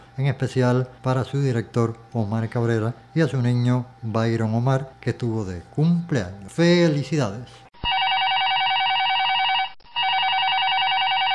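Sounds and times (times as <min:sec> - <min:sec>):
speech: 0:00.2 - 0:07.6
telephone ringing: 0:07.8 - 0:11.3.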